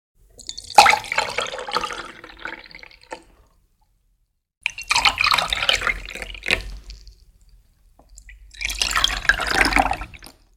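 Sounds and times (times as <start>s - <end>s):
water pouring into a glass: 0.4s - 3.4s, 4.6s - 7.2s, 8.3s - 10.5s.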